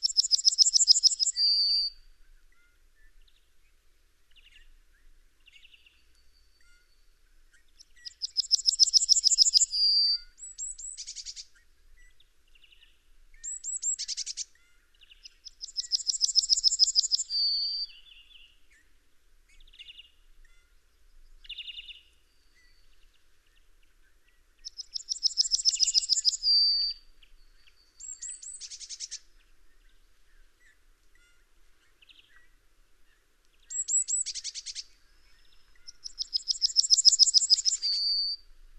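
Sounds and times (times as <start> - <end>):
yellowhammer singing: 0.0 - 18.9, 19.5 - 38.6.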